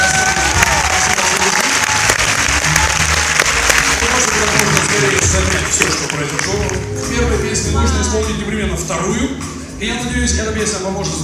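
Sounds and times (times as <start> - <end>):
audience applause: 0.0 - 6.9
speech: 8.1 - 11.2.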